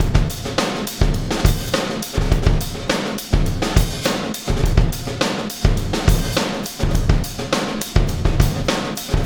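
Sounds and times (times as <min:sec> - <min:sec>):
processed drumkit beat: 0:00.0 - 0:09.2.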